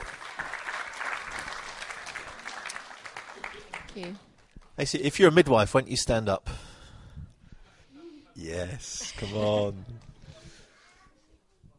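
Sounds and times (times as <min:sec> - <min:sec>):
audience applause: 0:00.0 - 0:04.2
speech: 0:04.0 - 0:06.6, 0:08.5 - 0:10.1.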